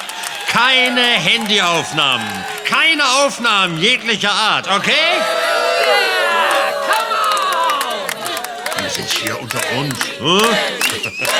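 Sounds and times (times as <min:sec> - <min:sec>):
concert crowd cheering and shouting: 0:00.0 - 0:11.3
laughter: 0:00.5 - 0:11.3
speech: 0:00.6 - 0:06.1, 0:08.9 - 0:11.3.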